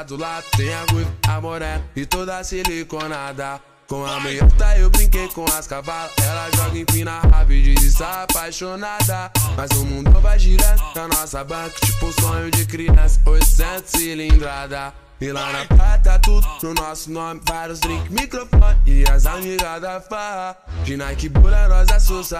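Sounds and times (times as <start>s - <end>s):
deep bass: 0.5s - 2.0s, 4.4s - 5.3s, 6.2s - 8.1s, 9.0s - 10.9s, 11.9s - 13.7s, 15.7s - 16.5s, 17.9s - 19.3s, 20.7s - 22.2s.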